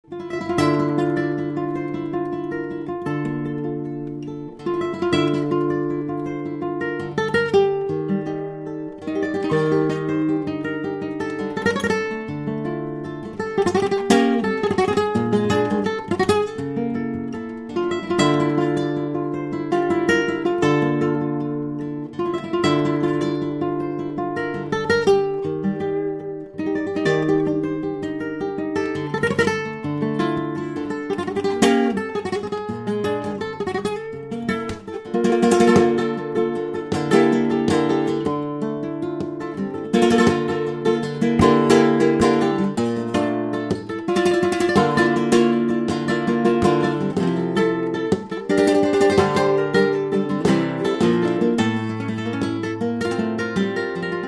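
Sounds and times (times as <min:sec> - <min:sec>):
guitar: 0:00.0 - 0:54.2.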